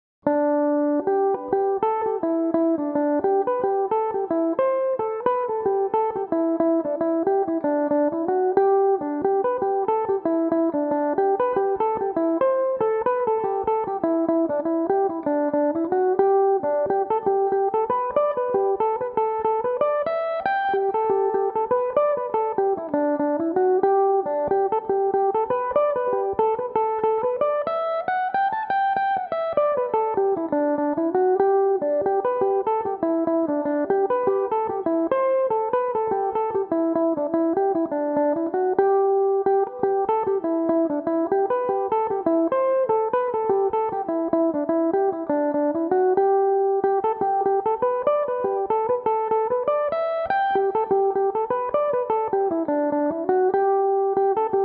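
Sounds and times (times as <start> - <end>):
mandolin playing in G major: 0.4 - 54.6.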